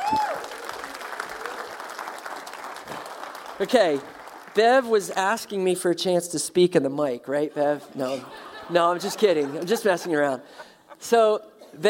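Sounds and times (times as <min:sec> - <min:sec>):
audience applause: 0:00.0 - 0:05.0
speech: 0:00.1 - 0:00.3, 0:03.6 - 0:11.8
laughter: 0:07.6 - 0:11.2.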